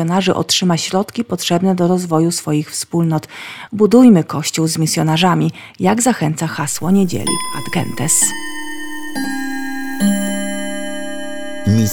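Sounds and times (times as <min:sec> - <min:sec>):
speech: 0:00.0 - 0:08.6, 0:11.7 - 0:11.9
alarm clock ringing: 0:06.6 - 0:11.9.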